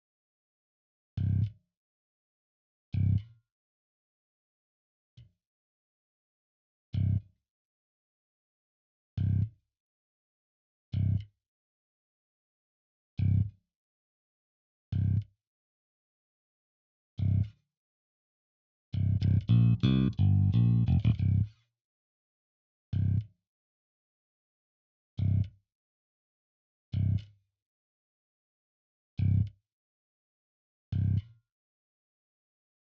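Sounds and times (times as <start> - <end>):
bass: 1.2 - 1.6, 2.9 - 3.4, 6.9 - 7.3, 9.2 - 9.6, 10.9 - 11.3, 13.2 - 13.5, 14.9 - 15.3, 17.2 - 17.6, 19.0 - 21.6, 22.9 - 23.3, 25.2 - 25.6, 26.9 - 27.4, 29.2 - 29.6, 30.9 - 31.4.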